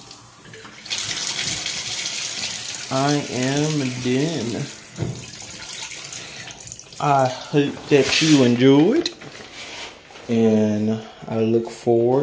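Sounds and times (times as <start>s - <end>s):
shower water running: 0.0s - 8.9s
speech: 2.9s - 5.3s, 7.0s - 9.2s, 10.3s - 12.2s.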